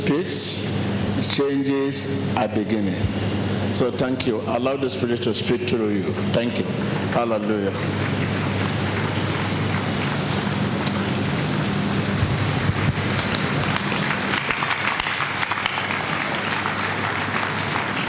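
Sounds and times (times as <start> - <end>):
speech: 0.1 - 8.1
audience clapping: 7.6 - 11.5, 12.2 - 18.0.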